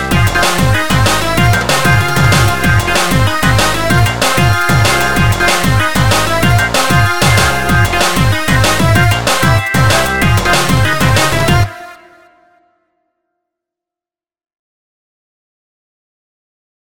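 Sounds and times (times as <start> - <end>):
instrumental music: 0.0 - 13.0.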